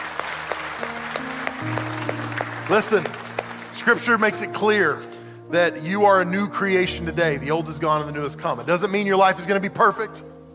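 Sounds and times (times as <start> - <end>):
audience applause: 0.0 - 4.9
speech: 2.7 - 3.2, 3.8 - 10.3.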